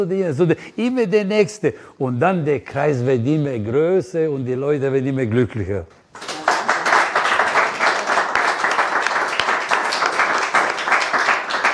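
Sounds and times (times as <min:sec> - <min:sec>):
speech: 0:00.0 - 0:06.3
audience applause: 0:06.2 - 0:11.7.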